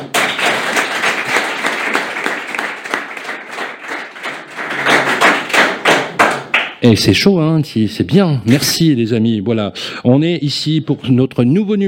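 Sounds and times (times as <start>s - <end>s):
audience applause: 0.0s - 6.7s
speech: 6.8s - 11.8s.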